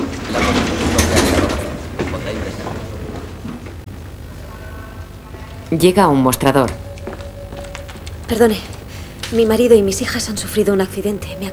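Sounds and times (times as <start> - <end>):
sliding door opening: 0.0 - 3.7
sliding door motor hum: 0.0 - 11.5
speech: 5.7 - 6.8, 8.3 - 11.5.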